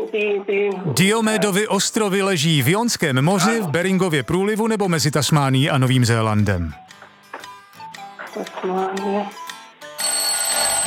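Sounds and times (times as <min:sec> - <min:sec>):
speech: 0:00.1 - 0:06.9, 0:08.4 - 0:09.4
loud shrill quiz time-up bell ringing: 0:10.0 - 0:10.8.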